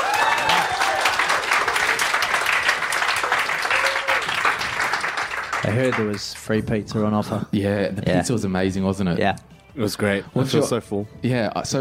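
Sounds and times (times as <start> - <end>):
faint voices and whoops: 0.0 - 2.0, 3.2 - 4.5
crowd of roughly fifty people clapping: 0.0 - 6.6
speech: 5.7 - 11.7.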